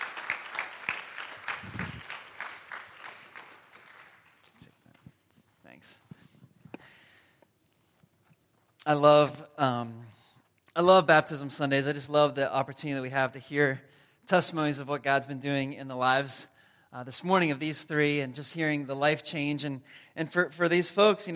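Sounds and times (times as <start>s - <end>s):
audience applause: 0.0s - 4.9s
speech: 8.9s - 10.1s, 10.8s - 21.3s.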